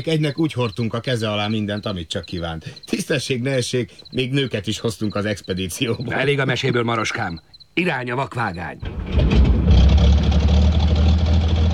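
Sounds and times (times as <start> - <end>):
speech: 0.0 - 9.4
engine of a newly designed rail vehicle running: 8.8 - 11.7.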